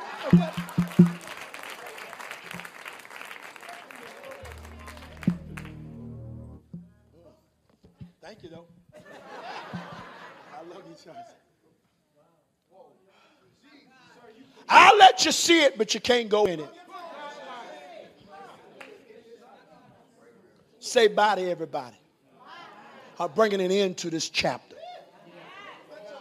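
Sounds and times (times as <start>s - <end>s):
laughter: 0.0s - 0.8s, 9.0s - 11.0s
audience clapping hands in praise: 0.0s - 6.4s
speech: 0.2s - 1.2s, 15.2s - 16.8s, 21.0s - 22.0s, 23.2s - 24.7s.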